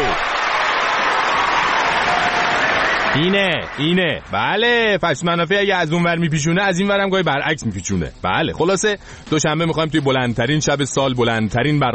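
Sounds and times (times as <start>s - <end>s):
applause during a show announcement for Yalda night: 0.0s - 4.2s
speech: 3.2s - 11.9s.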